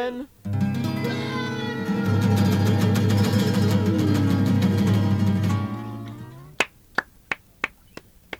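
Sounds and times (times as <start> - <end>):
music with sustained chords: 0.4 - 6.6
single person clapping: 6.0 - 8.3.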